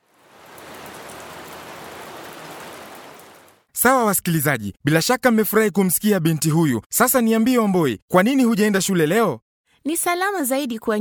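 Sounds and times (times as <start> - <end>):
heavy rain pouring down: 0.0 - 3.7
speech: 3.8 - 11.0.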